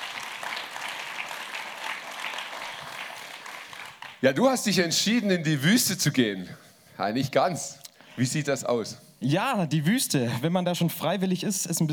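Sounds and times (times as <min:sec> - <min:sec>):
audience applause: 0:00.0 - 0:04.2
speech: 0:04.2 - 0:11.9.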